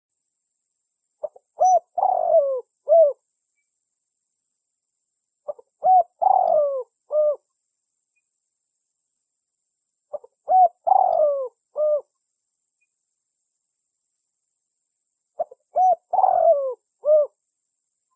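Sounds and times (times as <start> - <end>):
spotted dove cooing lure call: 1.2 - 3.2, 5.5 - 7.4, 10.1 - 12.1, 15.4 - 17.4.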